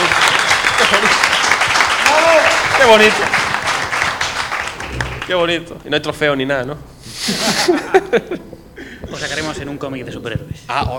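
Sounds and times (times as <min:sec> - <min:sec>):
applause for a new member inducted into a gaming hall of fame: 0:00.0 - 0:05.5
speech: 0:02.8 - 0:03.4, 0:05.3 - 0:10.9
laughter: 0:07.1 - 0:09.7.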